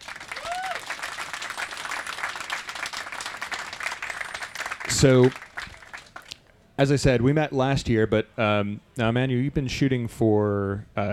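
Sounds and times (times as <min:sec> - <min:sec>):
audience round of applause: 0:00.0 - 0:06.4
speech: 0:04.9 - 0:05.4, 0:06.8 - 0:11.1.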